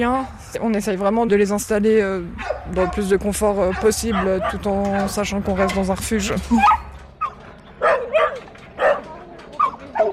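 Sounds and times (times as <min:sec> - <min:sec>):
speech: 0:00.0 - 0:06.8
young Staffordshire bull terrier barking: 0:02.4 - 0:05.8, 0:06.6 - 0:10.1.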